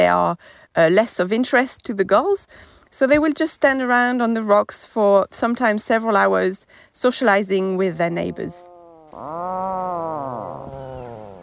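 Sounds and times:
speech: 0:00.0 - 0:10.9
Atlantic puffin groaning call: 0:08.2 - 0:11.4.

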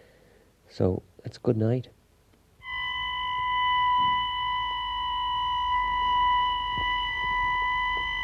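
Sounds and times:
speech: 0:00.7 - 0:02.0
ambulance station call alarm: 0:02.6 - 0:08.2.

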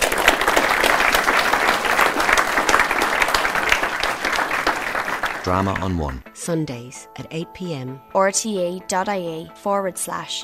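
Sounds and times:
audience applause: 0:00.0 - 0:06.2
speech: 0:05.4 - 0:10.4.

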